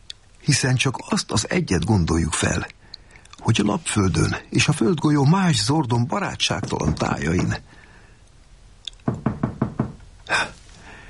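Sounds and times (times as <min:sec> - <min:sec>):
speech: 0:00.5 - 0:02.8, 0:03.4 - 0:07.8
heavy knocks on a door: 0:06.5 - 0:07.6, 0:09.0 - 0:10.0.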